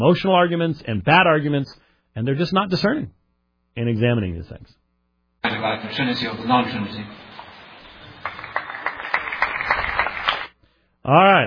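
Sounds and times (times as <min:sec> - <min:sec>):
speech: 0:00.0 - 0:03.2, 0:03.8 - 0:04.8, 0:05.4 - 0:07.3, 0:11.1 - 0:11.4
golf clap: 0:07.3 - 0:10.6.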